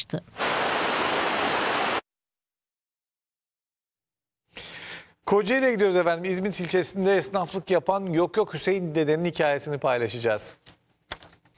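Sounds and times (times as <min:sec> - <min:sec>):
speech: 0:00.0 - 0:00.4, 0:05.3 - 0:10.8
rushing water at Uludağ: 0:00.4 - 0:02.0.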